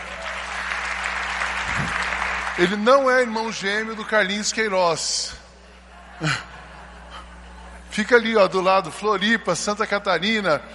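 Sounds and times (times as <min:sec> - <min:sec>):
audience applause: 0:00.0 - 0:03.3
speech: 0:02.6 - 0:05.4, 0:06.2 - 0:06.5, 0:08.0 - 0:10.7
laughter: 0:05.6 - 0:09.3.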